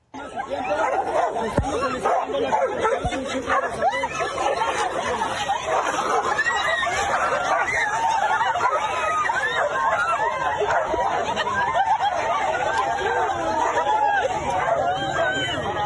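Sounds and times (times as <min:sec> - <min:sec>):
laughter: 0:00.0 - 0:15.8
two street dogs fighting and barking: 0:00.6 - 0:15.5.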